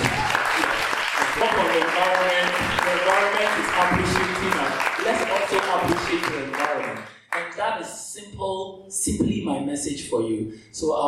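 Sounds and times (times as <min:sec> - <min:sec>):
audience applause at an environment-themed fashion runway show: 0:00.0 - 0:07.4
speech: 0:02.0 - 0:11.0.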